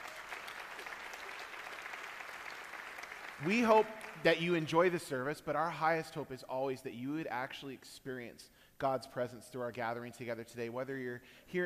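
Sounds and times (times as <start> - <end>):
audience applauding: 0.0 - 4.6
speech: 3.4 - 11.6.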